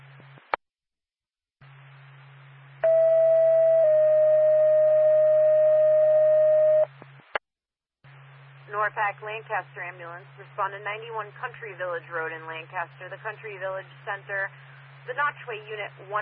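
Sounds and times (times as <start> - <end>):
dispatch alert tone: 2.8 - 6.9
speech: 8.9 - 16.2.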